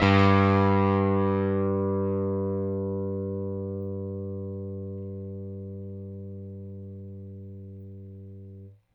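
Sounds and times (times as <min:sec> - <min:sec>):
Rickenbacker bass guitar: 0:00.0 - 0:08.9.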